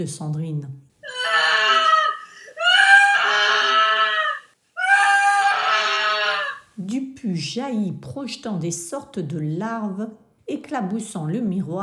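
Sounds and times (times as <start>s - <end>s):
speech: 0.0s - 0.8s, 6.8s - 11.8s
woman's shrill piercing scream: 1.0s - 6.7s.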